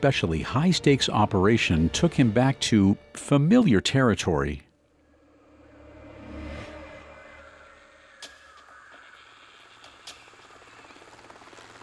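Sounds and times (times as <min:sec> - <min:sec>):
speech: 0:00.0 - 0:04.6
helicopter landing in the grass: 0:09.1 - 0:11.8.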